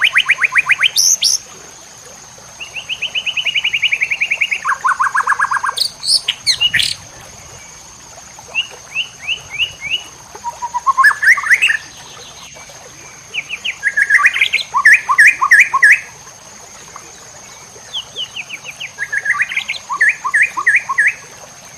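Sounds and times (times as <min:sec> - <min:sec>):
white-rumped shama song: 0:00.0 - 0:01.4, 0:02.6 - 0:07.8, 0:08.5 - 0:16.1, 0:17.5 - 0:21.7
steady high hum: 0:05.7 - 0:12.2.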